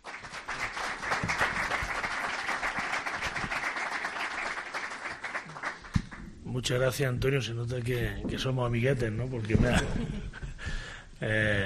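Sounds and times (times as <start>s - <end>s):
audience applause: 0.0s - 6.2s
speech: 6.6s - 10.3s, 11.2s - 11.6s.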